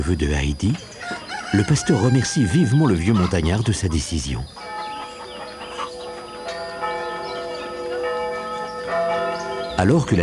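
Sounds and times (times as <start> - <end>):
speech: 0.0 - 0.9, 1.5 - 4.6, 9.8 - 10.2
village church bells chiming to celebrate an event: 2.0 - 10.2.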